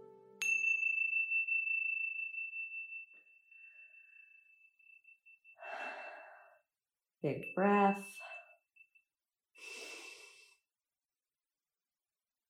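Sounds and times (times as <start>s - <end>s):
meditation chime ringing: 0.0s - 6.1s, 7.2s - 9.0s
speech: 7.2s - 8.2s.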